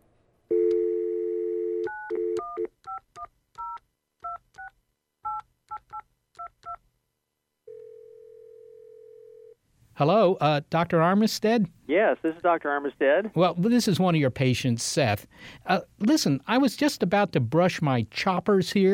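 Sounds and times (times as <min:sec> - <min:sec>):
telephone dial tone: 0:00.5 - 0:02.7, 0:07.7 - 0:09.6
speech: 0:10.0 - 0:18.9.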